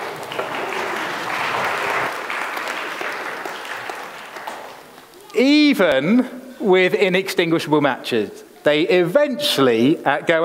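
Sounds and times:
round of applause: 0.0 - 5.4
speech: 5.4 - 10.4.

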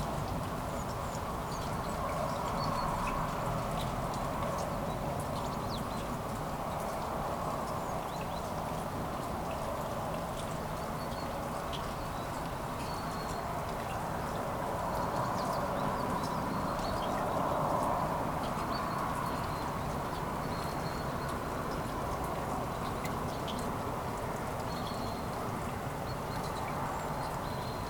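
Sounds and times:
light morning rain on city streets in Kuldiga, Latvia: 0.0 - 27.8
small bright drips ticking: 0.2 - 27.8.

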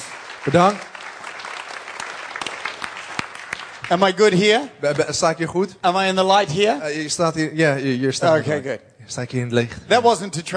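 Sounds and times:
audience applause: 0.0 - 4.7
speech: 0.4 - 0.9, 3.9 - 10.5.

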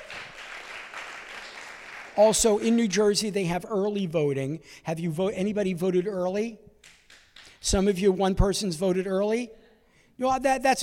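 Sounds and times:
crowd applauding: 0.0 - 2.8, 6.8 - 7.6
speech: 2.2 - 6.7, 7.6 - 9.6, 10.2 - 10.8.

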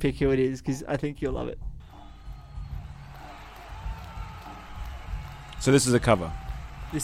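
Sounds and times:
speech: 0.0 - 1.7, 5.6 - 7.0
stadium crowd cheering at concert: 1.8 - 7.0.

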